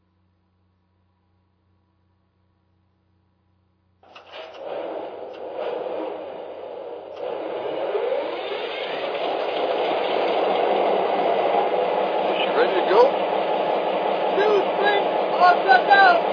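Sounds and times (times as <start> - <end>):
GP40 diesel locomotive: 4.0 - 16.3.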